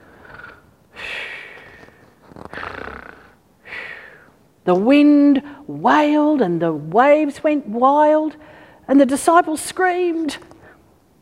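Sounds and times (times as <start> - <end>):
snoring: 2.3 - 3.4
speech: 4.7 - 10.5.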